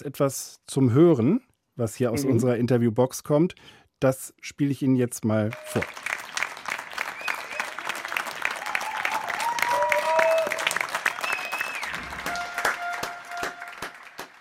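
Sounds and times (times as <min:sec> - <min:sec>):
speech: 0:00.0 - 0:06.1
applause from balconies: 0:05.5 - 0:14.3.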